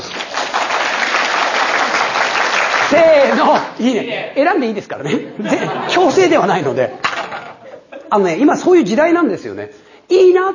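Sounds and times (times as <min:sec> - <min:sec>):
audience applause: 0:00.0 - 0:03.7
speech: 0:02.9 - 0:07.1, 0:08.1 - 0:10.5
laughter: 0:05.0 - 0:08.2.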